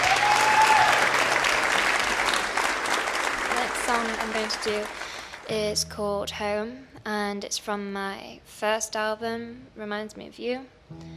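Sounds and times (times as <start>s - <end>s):
audience applause welcoming a singer to the Red Barn stage: 0.0s - 5.5s
speech: 4.4s - 11.1s.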